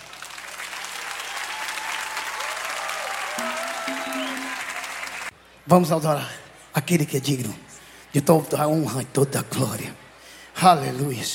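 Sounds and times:
audience applause: 0.0s - 5.3s
speech: 5.7s - 10.0s, 10.6s - 11.3s.

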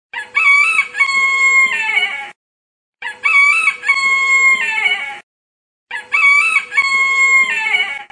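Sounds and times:
rooster crowing in Galicia: 0.2s - 2.3s, 3.0s - 5.2s, 5.9s - 8.1s.

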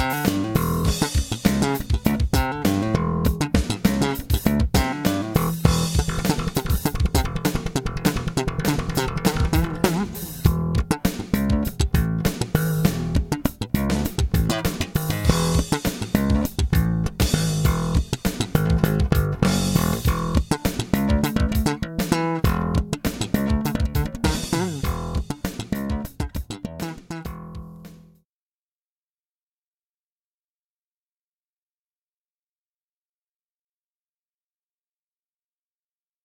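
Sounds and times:
sleep bass: 0.0s - 28.2s.

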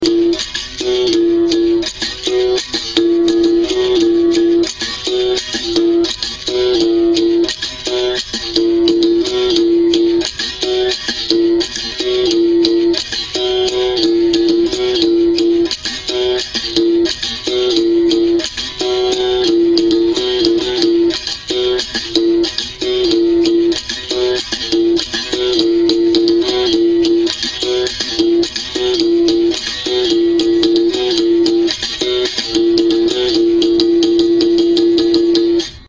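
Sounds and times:
instrumental rhythm: 0.0s - 35.8s.

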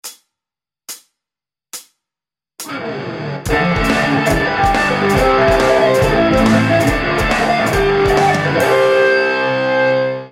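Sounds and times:
arpeggios: 2.7s - 10.2s.

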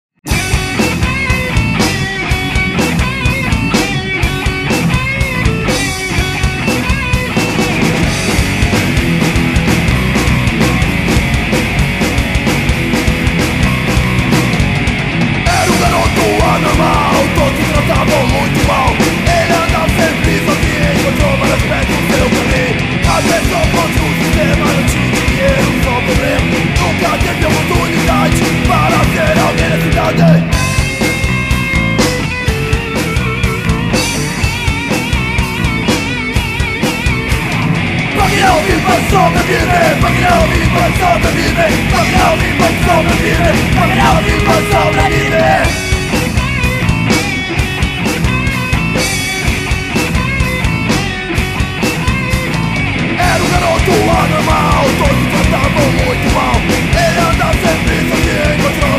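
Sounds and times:
punk rock music: 0.2s - 58.9s.

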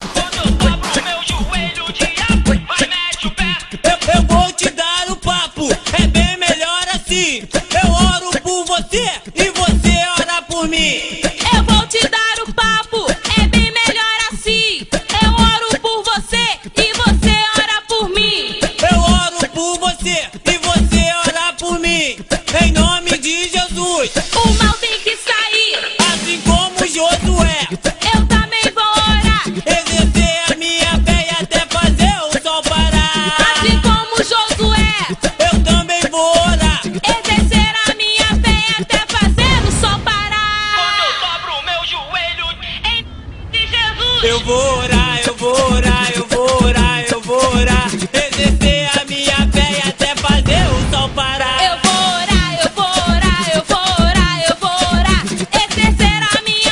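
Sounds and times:
funk gospel music: 0.0s - 42.9s, 43.7s - 56.7s.

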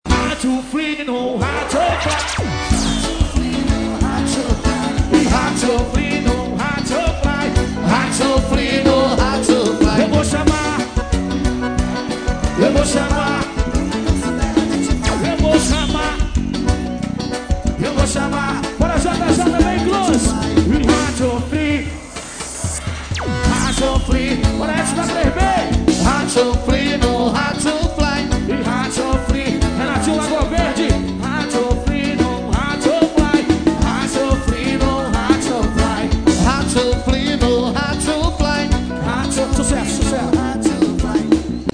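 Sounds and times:
forro xote music: 0.1s - 41.7s.

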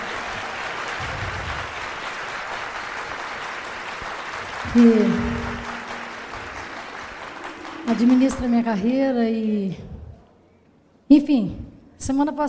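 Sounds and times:
audience applause: 0.0s - 8.8s
speech: 4.7s - 5.3s, 7.9s - 9.9s, 11.1s - 12.4s.

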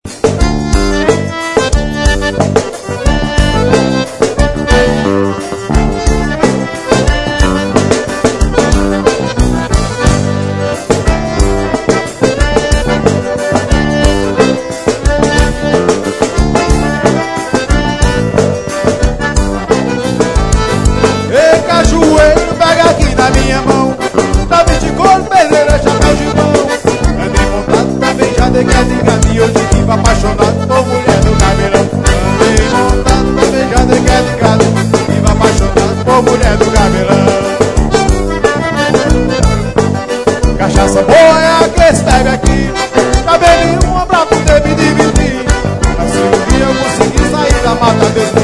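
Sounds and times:
accordion: 0.0s - 48.4s.

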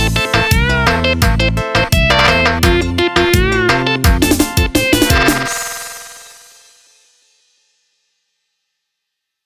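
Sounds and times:
remixed melody: 0.0s - 7.4s.

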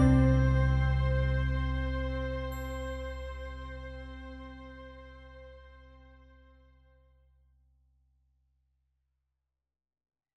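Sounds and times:
meditative music: 0.0s - 5.9s.

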